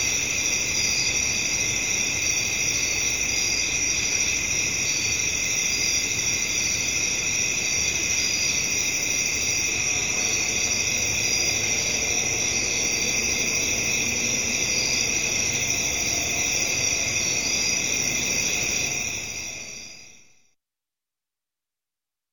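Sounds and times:
crickets at night in a residential area: 0:00.0 - 0:20.4
background traffic: 0:09.1 - 0:19.5.

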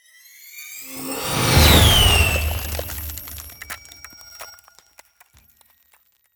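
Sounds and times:
ice spell cold whooshes: 0:00.9 - 0:03.9.

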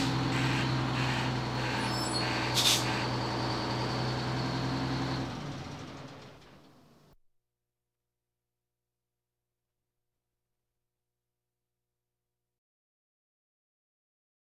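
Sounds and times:
police sirens: 0:00.0 - 0:06.4.

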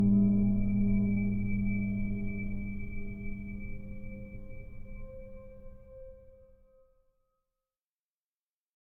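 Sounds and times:
scary long moaning musical drone pad with high overtones going up and down: 0:00.0 - 0:05.7.

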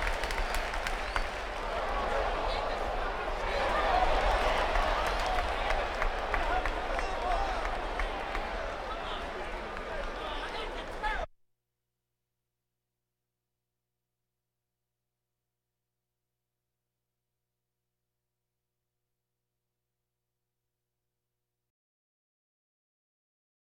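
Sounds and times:
crowds: 0:00.0 - 0:11.3.

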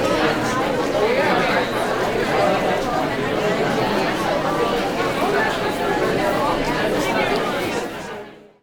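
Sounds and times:
busy student crowd walla at a school: 0:00.0 - 0:08.6.

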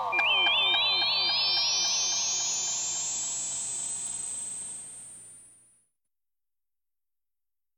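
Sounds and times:
UFO science fiction sound effects: 0:00.1 - 0:04.1.

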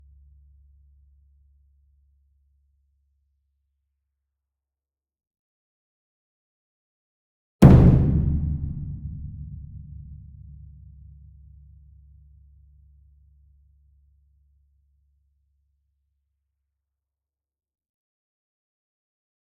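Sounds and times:
ensemble concert bass drum: 0:07.6 - 0:10.3.

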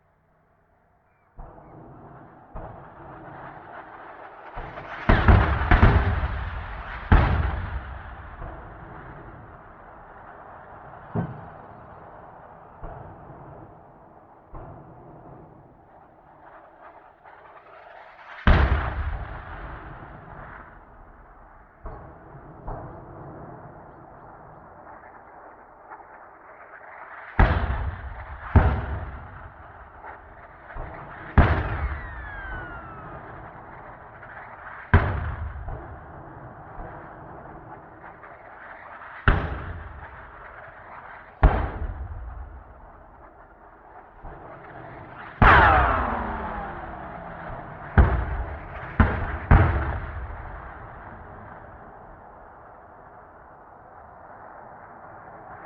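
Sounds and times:
mortar cannon firing: 0:01.4 - 0:13.8, 0:17.5 - 0:24.0, 0:27.4 - 0:52.6.

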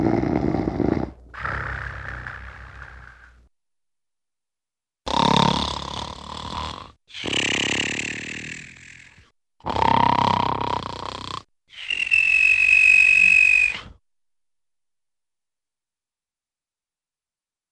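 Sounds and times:
funny man snoring: 0:00.0 - 0:03.4, 0:05.1 - 0:13.9.

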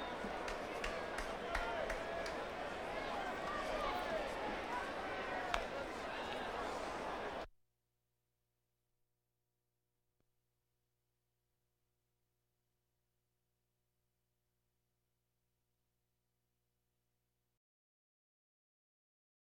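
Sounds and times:
crowds: 0:00.0 - 0:07.5.

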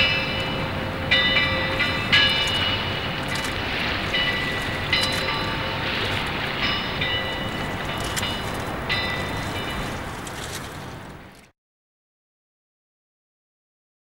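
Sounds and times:
boat in a harbour: 0:00.0 - 0:11.6.

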